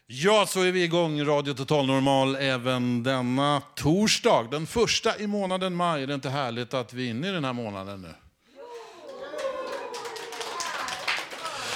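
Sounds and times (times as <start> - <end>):
speech: 0.1 - 8.2
audience clapping: 8.6 - 11.7.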